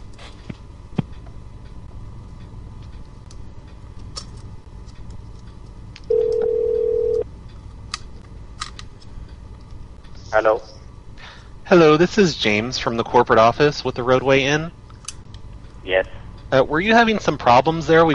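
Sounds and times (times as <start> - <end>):
steady ringback tone: 6.1 - 7.2
telephone line clicks during a call transfer to an extension: 6.1 - 7.2
speech: 10.4 - 10.8, 11.7 - 14.8, 15.9 - 18.1.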